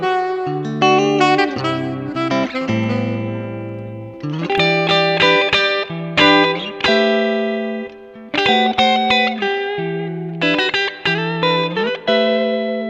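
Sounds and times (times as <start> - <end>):
saxophone: 0.0 - 9.8
chilled guitar: 0.0 - 12.8.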